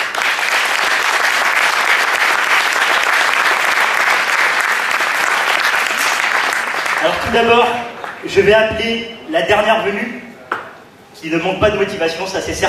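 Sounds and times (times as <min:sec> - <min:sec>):
audience applause: 0:00.0 - 0:08.2
speech: 0:07.0 - 0:10.2, 0:11.2 - 0:12.6.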